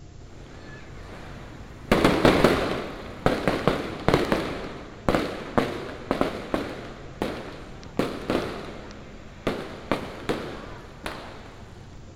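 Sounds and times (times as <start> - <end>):
New Year fireworks exploding: 0.0 - 12.1
passers-by shouting: 0.3 - 3.5, 7.5 - 12.0.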